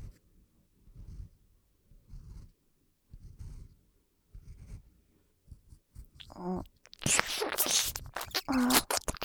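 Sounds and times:
maid ear cleaning ASMR: 0:06.1 - 0:09.2.

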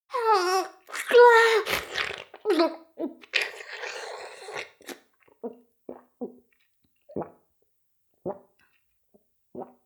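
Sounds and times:
oral sex sounds: 0:00.1 - 0:06.4.

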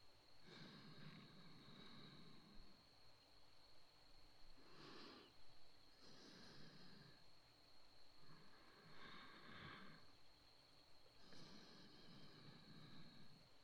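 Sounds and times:
breathing in the right ear: 0:00.4 - 0:03.0, 0:04.6 - 0:07.4, 0:08.2 - 0:13.6.

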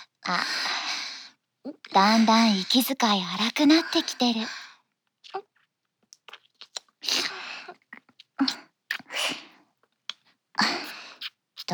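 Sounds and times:
speech: 0:00.2 - 0:00.6, 0:01.9 - 0:04.6
ear licking mouth sounds: 0:05.2 - 0:11.7.

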